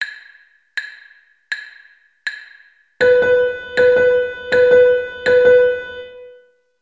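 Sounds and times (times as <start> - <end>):
sixteenth and dotted eighth rhythm: 3.0 - 6.4.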